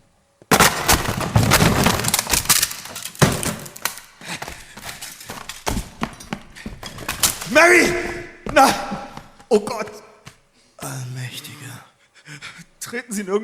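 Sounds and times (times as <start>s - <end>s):
wooden door being forced open: 0.5s - 9.3s
speech: 7.5s - 8.8s, 9.5s - 10.0s, 12.9s - 13.4s.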